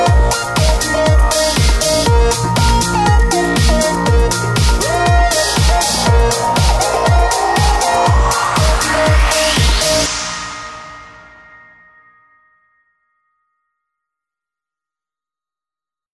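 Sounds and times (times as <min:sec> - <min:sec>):
tech intro music: 0:00.0 - 0:12.0.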